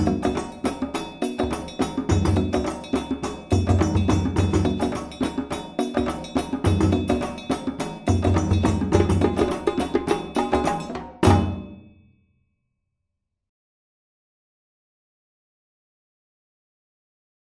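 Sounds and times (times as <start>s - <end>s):
djembe build-up: 0.0s - 11.9s.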